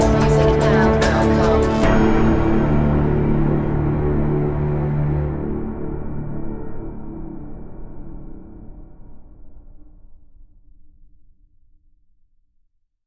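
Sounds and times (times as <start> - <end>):
dramatic music cue: 0.0 - 9.4.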